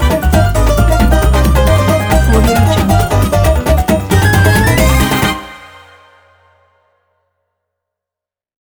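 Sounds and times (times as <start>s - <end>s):
salsa music: 0.0s - 6.6s.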